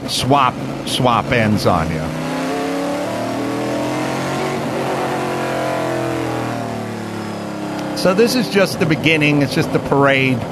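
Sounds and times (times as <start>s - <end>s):
car engine roaring while accelerating around a race track: 0.0s - 10.4s
speech: 0.1s - 2.2s, 8.0s - 10.4s.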